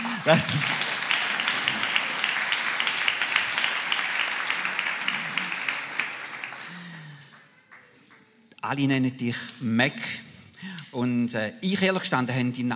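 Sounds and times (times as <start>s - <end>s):
audience applause: 0.0s - 8.3s
speech: 0.2s - 0.8s, 8.7s - 10.3s, 10.9s - 12.7s.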